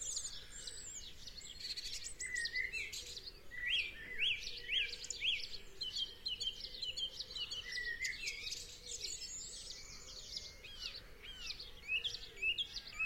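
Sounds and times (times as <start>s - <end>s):
dawn chorus of many birds singing: 0.0s - 13.0s.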